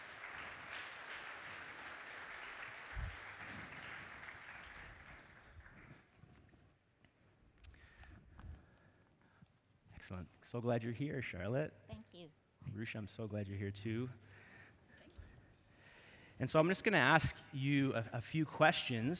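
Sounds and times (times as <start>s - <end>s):
audience applause: 0.0s - 6.0s
speech: 10.1s - 14.4s, 16.4s - 19.1s.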